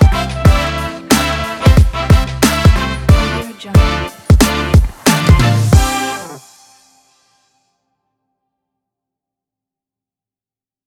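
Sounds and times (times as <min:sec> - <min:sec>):
energetic jazzy hip hop: 0:00.0 - 0:06.6.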